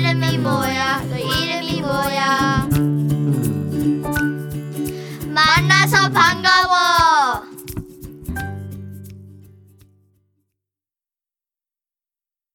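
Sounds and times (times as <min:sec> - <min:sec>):
Korean song: 0:00.0 - 0:09.3.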